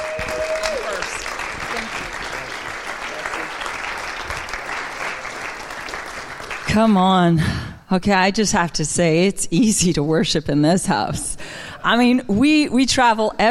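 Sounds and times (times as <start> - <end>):
audience applause: 0.0 - 6.8
speech: 6.8 - 13.4.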